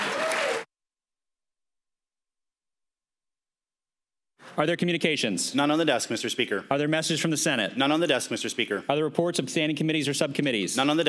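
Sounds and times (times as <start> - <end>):
applause: 0.0 - 0.7
speech: 4.5 - 11.0.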